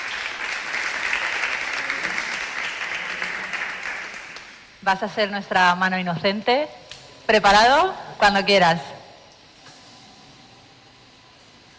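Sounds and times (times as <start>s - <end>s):
audience applause: 0.0s - 4.7s
speech: 4.8s - 8.9s.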